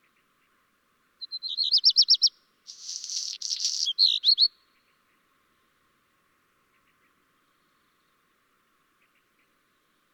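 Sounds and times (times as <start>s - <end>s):
black redstart singing: 1.6s - 4.5s.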